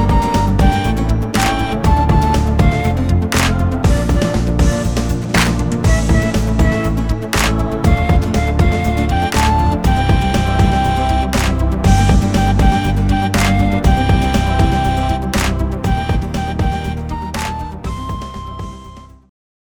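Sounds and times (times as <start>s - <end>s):
flute in instrumental music: 0.0s - 19.3s.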